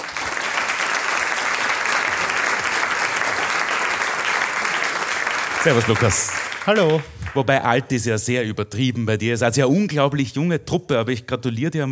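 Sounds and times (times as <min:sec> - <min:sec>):
applause: 0:00.0 - 0:07.9
speech: 0:05.6 - 0:11.9.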